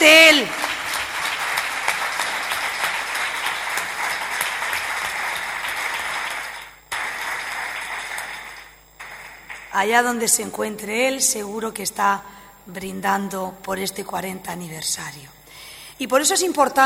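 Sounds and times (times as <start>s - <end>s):
audience applause at a 40th-anniversary tribute event: 0.0s - 9.8s
speech: 9.8s - 15.4s, 16.0s - 16.8s.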